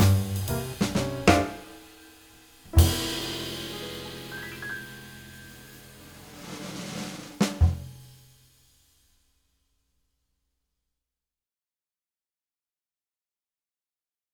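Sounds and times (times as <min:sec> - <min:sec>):
rhythm backing track: 0:00.0 - 0:01.9, 0:02.7 - 0:08.0.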